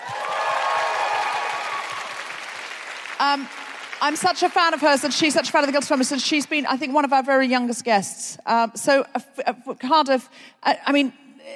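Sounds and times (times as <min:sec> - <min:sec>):
audience applause: 0:00.0 - 0:05.4
speech: 0:03.2 - 0:11.5.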